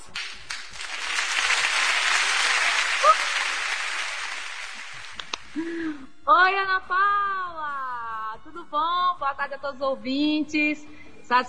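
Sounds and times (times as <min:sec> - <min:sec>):
round of applause: 0:00.0 - 0:05.7
speech: 0:06.4 - 0:07.3, 0:08.6 - 0:11.4.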